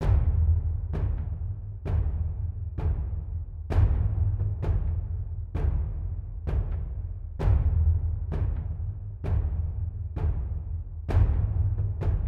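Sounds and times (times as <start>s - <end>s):
interactive music: 0.0s - 12.2s.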